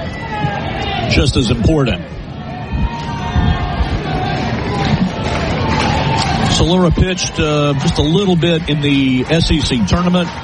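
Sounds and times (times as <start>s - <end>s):
baseball crowd murmuring: 0.0s - 10.4s
speech: 0.4s - 2.2s, 6.6s - 10.4s.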